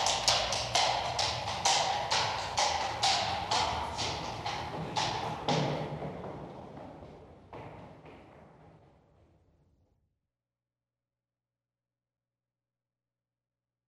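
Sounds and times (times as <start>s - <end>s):
horse trotting on a hard street: 0.0s - 9.2s.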